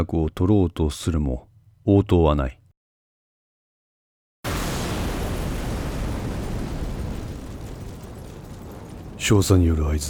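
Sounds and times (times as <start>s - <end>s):
speech: 0.0s - 2.6s, 9.2s - 10.0s
explosion with loud roar: 4.5s - 9.5s.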